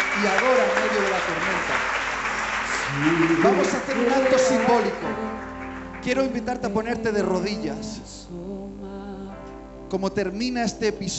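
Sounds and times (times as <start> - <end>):
audience applauding: 0.0 - 6.7
speech: 0.2 - 2.0, 2.9 - 8.7, 9.9 - 11.1.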